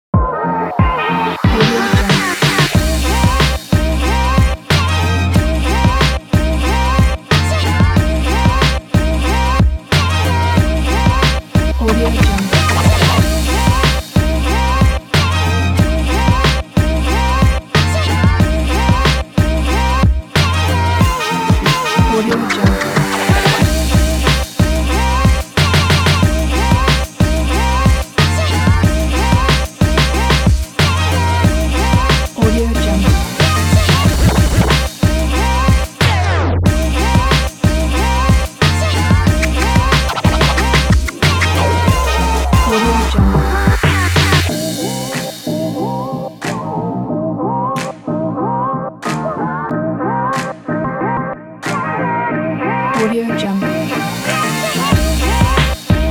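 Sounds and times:
hip hop music: 0:00.1 - 0:56.1.

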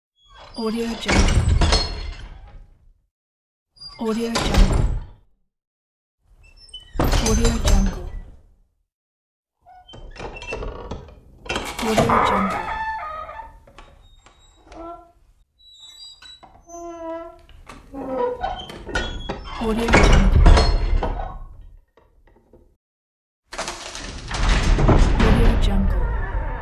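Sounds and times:
dungeon door: 0:00.4 - 0:02.6, 0:04.0 - 0:05.2, 0:06.7 - 0:08.4, 0:09.8 - 0:15.2, 0:16.5 - 0:21.6, 0:23.5 - 0:26.5.

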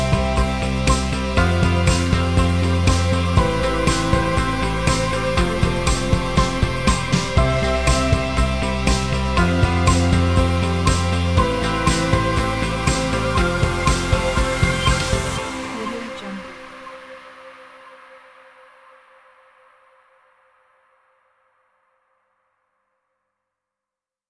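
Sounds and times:
emotional positive world music: 0:00.0 - 0:19.0.

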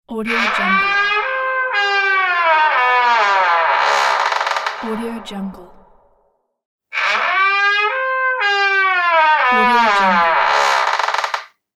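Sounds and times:
squeaky door: 0:00.2 - 0:05.0, 0:07.0 - 0:11.5.

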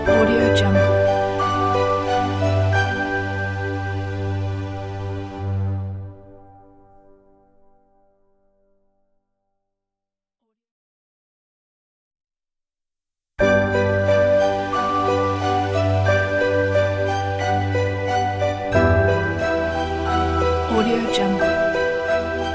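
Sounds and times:
warm inspirational piano music: 0:00.0 - 0:08.1, 0:13.4 - 0:22.5.

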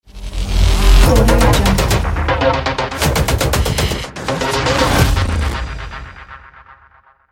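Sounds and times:
cyberpunk audio logo: 0:00.0 - 0:07.3.

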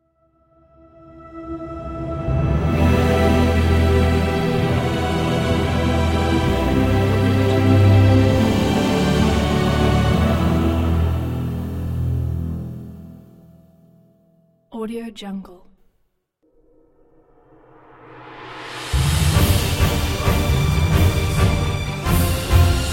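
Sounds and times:
epic cinematic ident music: 0:00.8 - 0:13.5, 0:17.5 - 0:22.9.

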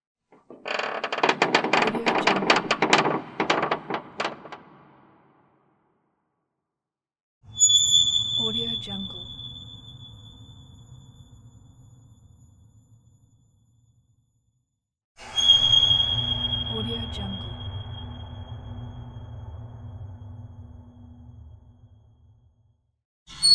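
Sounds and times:
Halloween horror squeaks: 0:00.5 - 0:04.4, 0:07.5 - 0:10.9, 0:15.2 - 0:21.4.

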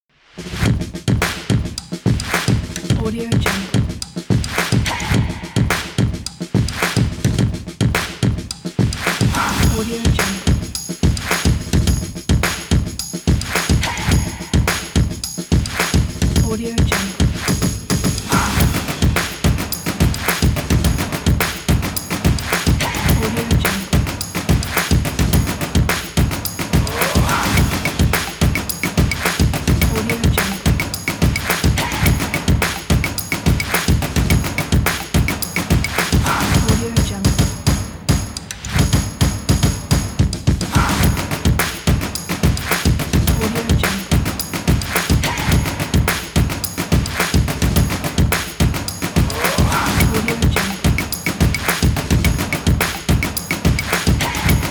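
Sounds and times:
percussion: 0:00.2 - 0:54.6.

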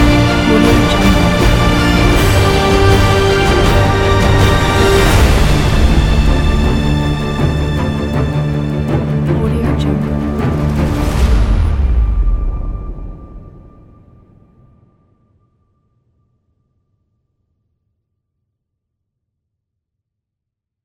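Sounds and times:
blockbuster trailer audio: 0:00.0 - 0:15.9.

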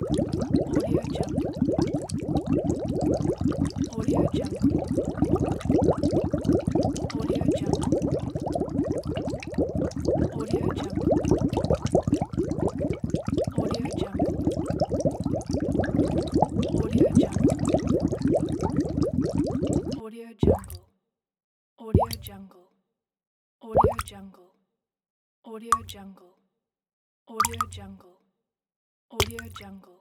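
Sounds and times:
bubbles: 0:00.0 - 0:20.8, 0:22.0 - 0:22.2, 0:23.8 - 0:24.1, 0:27.4 - 0:27.7.

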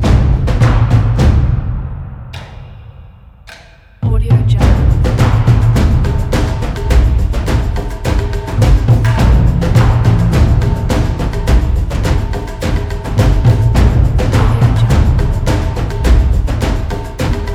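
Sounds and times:
dark percussion: 0:00.0 - 0:17.5.

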